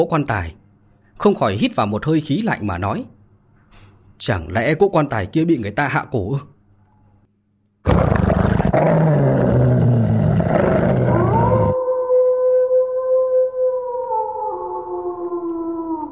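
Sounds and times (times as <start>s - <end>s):
speech: 0.0s - 0.6s, 1.2s - 3.2s, 4.2s - 6.5s
dog growling and howling: 7.9s - 16.0s.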